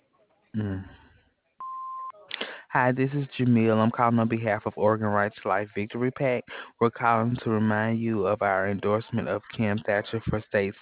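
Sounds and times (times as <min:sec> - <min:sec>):
speech: 0:00.5 - 0:01.0, 0:02.8 - 0:10.8
answering machine beep tone: 0:01.6 - 0:02.2.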